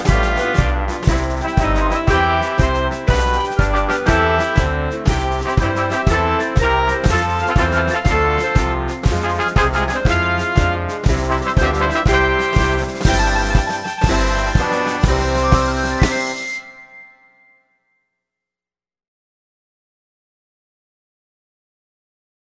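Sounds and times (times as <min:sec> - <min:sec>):
instrumental music: 0:00.0 - 0:17.7.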